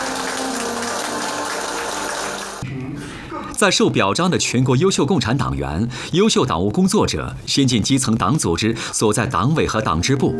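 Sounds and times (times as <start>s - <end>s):
warm applause: 0.0s - 2.6s
speech: 3.6s - 10.3s.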